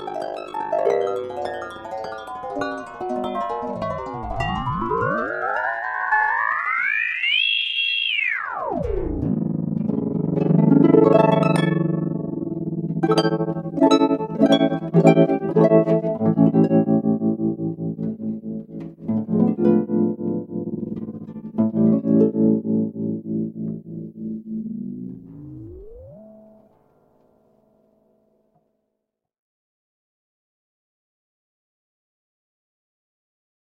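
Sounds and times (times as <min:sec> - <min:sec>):
harp: 0:00.0 - 0:26.8.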